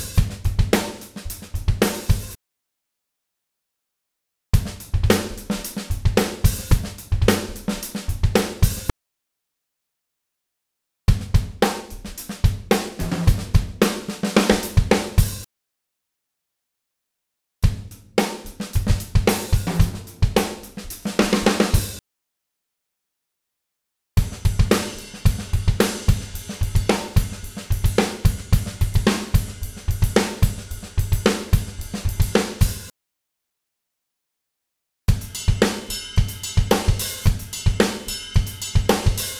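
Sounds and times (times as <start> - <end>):
funky rock drumbeat: 0.0 - 2.4, 4.6 - 8.9, 11.1 - 15.4, 17.6 - 22.0, 24.2 - 32.9, 35.1 - 39.3.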